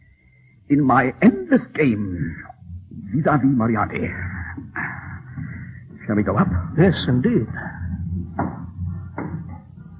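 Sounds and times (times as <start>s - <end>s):
speech: 0.7s - 2.5s, 3.1s - 4.8s, 6.1s - 7.7s
wooden stairway creaking underfoot: 4.5s - 9.9s.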